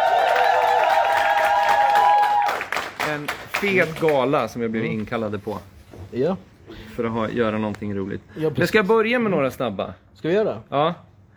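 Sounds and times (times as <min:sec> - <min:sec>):
large audience applauding and cheering at a gala: 0:00.0 - 0:04.4
speech: 0:03.6 - 0:11.1.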